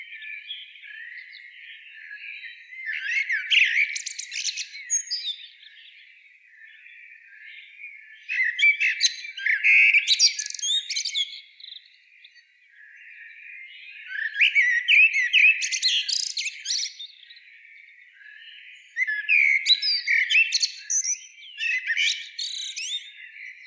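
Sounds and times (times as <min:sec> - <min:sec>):
common blackbird singing: 0:00.0 - 0:23.6.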